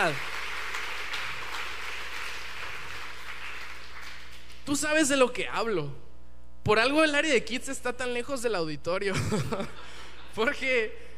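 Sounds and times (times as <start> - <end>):
speech: 0.0 - 0.3, 4.7 - 11.1
audience clapping: 0.0 - 4.8
laughter: 9.1 - 10.4.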